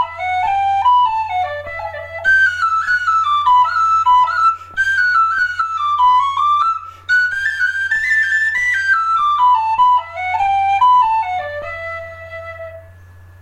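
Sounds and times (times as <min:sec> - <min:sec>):
jig music: 0:00.0 - 0:12.9.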